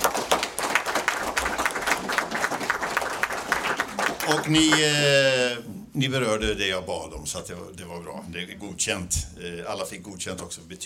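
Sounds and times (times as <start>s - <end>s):
audience applause: 0.0s - 5.1s
speech: 4.4s - 10.8s.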